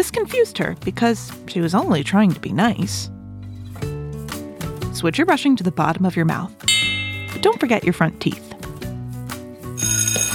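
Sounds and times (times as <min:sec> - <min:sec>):
speech: 0:00.0 - 0:03.2, 0:05.0 - 0:06.8, 0:07.4 - 0:08.4
school bell ringing for recess: 0:06.7 - 0:07.9.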